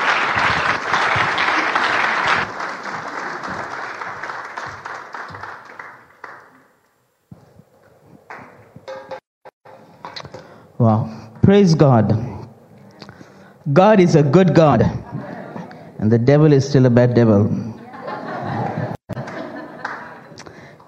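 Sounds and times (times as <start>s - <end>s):
church congregation applauding to welcome a pastor: 0.0s - 6.8s, 19.1s - 20.3s
speech: 10.9s - 12.3s, 13.7s - 15.0s, 16.0s - 17.6s
laughter: 14.6s - 16.0s, 17.7s - 20.4s.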